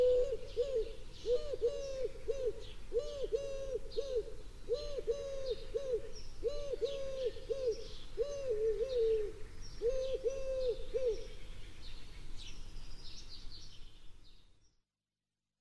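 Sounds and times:
turtle dove singing: 0.0 - 11.5.

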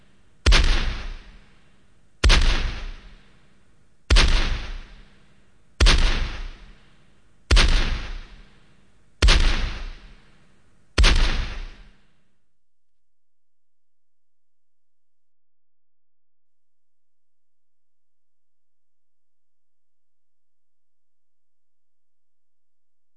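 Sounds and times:
rifle shots fired as a salute: 0.4 - 1.4, 2.2 - 3.3, 4.1 - 5.1, 5.8 - 6.8, 7.5 - 8.5, 9.2 - 10.2, 11.0 - 12.0.

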